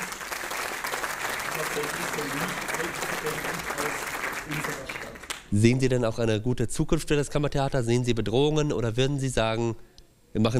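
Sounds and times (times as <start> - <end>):
audience applause: 0.0 - 5.5
speech: 1.6 - 10.5.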